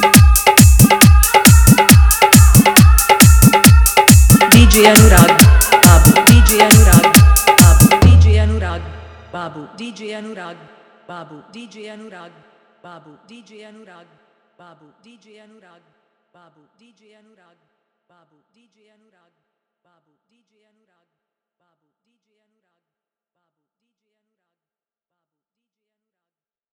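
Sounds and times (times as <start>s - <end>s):
dholak drum in Hindi bass mix: 0.0s - 9.2s
bass: 8.0s - 9.2s.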